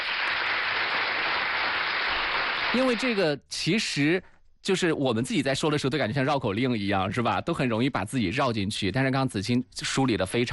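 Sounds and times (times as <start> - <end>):
clapping praising a child during a parent Q and A session: 0.0 - 2.8
speech: 2.7 - 10.5.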